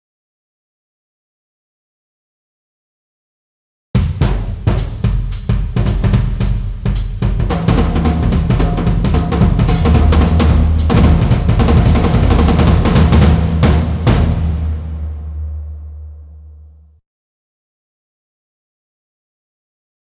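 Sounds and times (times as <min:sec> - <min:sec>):
drums: 0:04.0 - 0:16.8.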